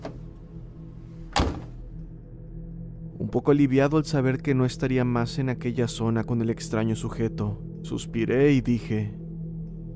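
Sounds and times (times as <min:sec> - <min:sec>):
low rumbling hum: 0:00.0 - 0:09.9
car door slamming shut: 0:01.3 - 0:01.8
speech: 0:03.3 - 0:09.2.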